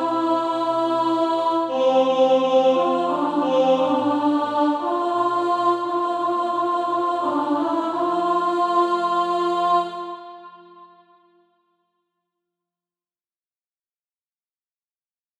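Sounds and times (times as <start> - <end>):
alto voice singing SATB practice music: 0.0 - 11.3.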